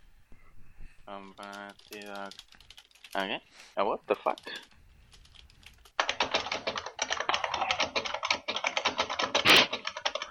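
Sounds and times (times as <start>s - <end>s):
speech: 1.1s - 4.7s
loud banging typing on computer keyboard: 1.4s - 3.3s, 4.3s - 10.3s.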